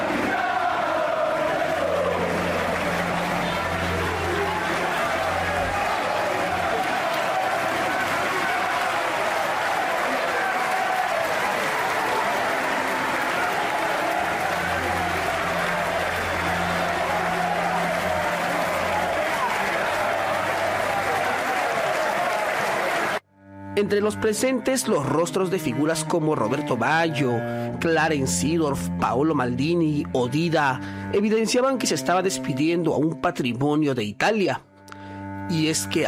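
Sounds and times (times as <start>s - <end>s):
fans chanting: 0.0s - 23.2s
speech: 23.8s - 34.7s, 35.5s - 36.0s.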